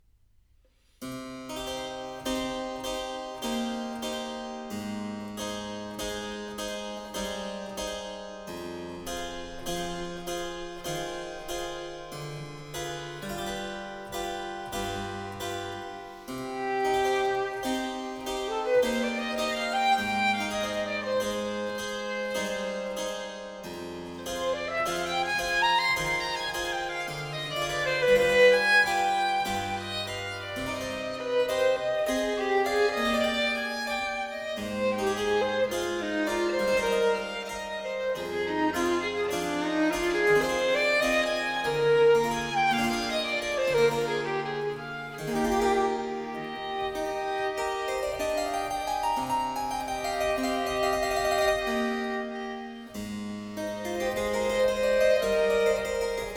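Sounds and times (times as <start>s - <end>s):
harpsichord playing sonata adagio: 1.1s - 56.3s
violin playing sonata adagio: 1.5s - 56.3s.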